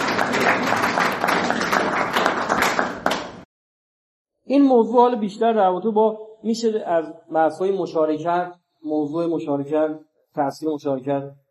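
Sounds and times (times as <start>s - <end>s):
audience applause: 0.0s - 3.4s
speech: 4.5s - 11.4s.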